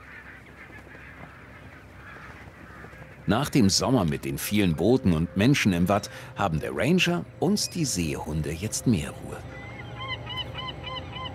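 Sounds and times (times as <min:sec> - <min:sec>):
barnacle geese honking: 0:00.0 - 0:11.3
speech: 0:03.3 - 0:09.6.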